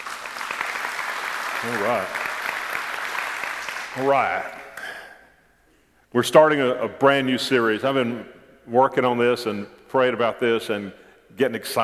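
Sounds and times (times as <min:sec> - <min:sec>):
audience praise clap: 0:00.0 - 0:05.0
speech: 0:01.6 - 0:02.2, 0:03.9 - 0:04.6, 0:06.1 - 0:11.8.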